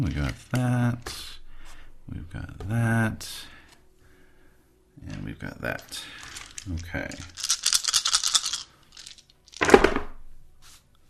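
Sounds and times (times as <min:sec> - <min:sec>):
speech: 0:00.0 - 0:01.3, 0:02.1 - 0:03.6, 0:05.0 - 0:07.4
dice knocked out of the way: 0:06.3 - 0:10.2.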